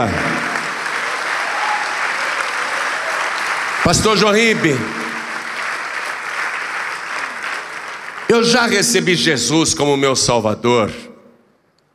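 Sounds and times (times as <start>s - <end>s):
speech: 0.0s - 0.3s, 3.9s - 5.0s, 8.3s - 11.1s
audience applauding: 0.0s - 9.5s.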